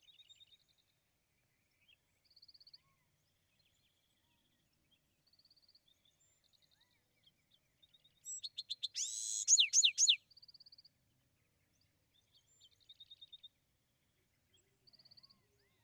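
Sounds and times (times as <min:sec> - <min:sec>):
Bewick's wren singing: 0:08.3 - 0:10.2.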